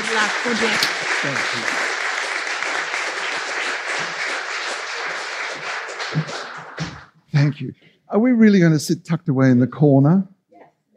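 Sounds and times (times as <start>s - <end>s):
audience applause welcoming a speaker at a literary talk on Patrick White: 0.0s - 7.2s
speech: 0.1s - 1.9s, 7.4s - 10.3s.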